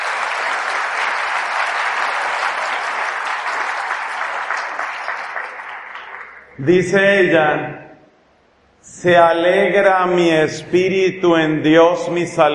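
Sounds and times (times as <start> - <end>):
audience applause: 0.0 - 6.6
speech: 6.6 - 7.8, 9.0 - 12.5.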